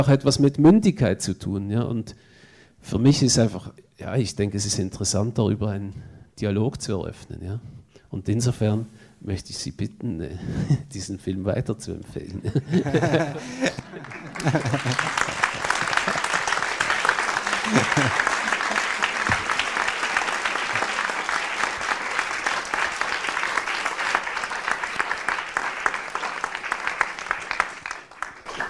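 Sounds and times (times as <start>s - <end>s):
speech: 0.0s - 15.4s, 17.7s - 18.3s
laughter: 12.4s - 21.2s
audience clapping: 12.8s - 28.6s.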